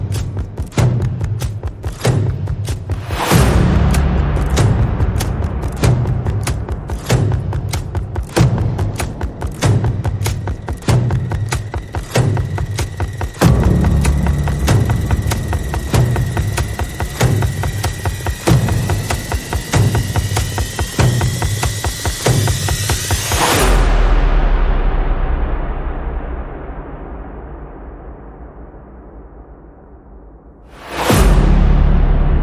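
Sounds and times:
percussion pulses: 0.0 - 32.4
sound effects: 1.8 - 25.5.

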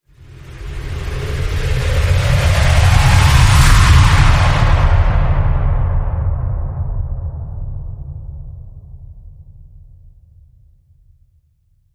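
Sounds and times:
wind transition whoosh: 0.4 - 8.2.

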